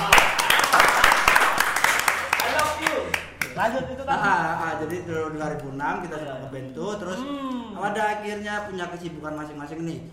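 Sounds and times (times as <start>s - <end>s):
hand clapping: 0.0s - 3.7s
speech: 3.6s - 10.1s.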